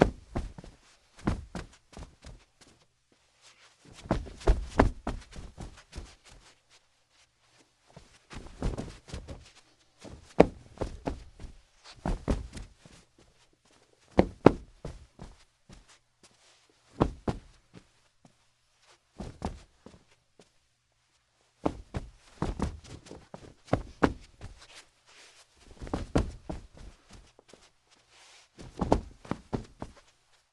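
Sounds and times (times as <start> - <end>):
body tumbling after a trip: 0.0 - 2.7, 3.9 - 6.5, 8.0 - 13.0, 14.0 - 16.0, 16.9 - 17.9, 19.2 - 20.0, 21.6 - 24.8, 25.6 - 27.7, 28.6 - 30.2
bare feet footsteps on carpet staggering drunk: 0.0 - 6.7, 7.5 - 20.6, 21.6 - 30.5.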